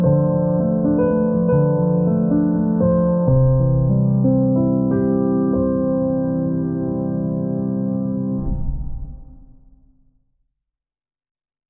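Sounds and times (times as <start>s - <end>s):
peaceful meditation piano music: 0.0s - 8.4s.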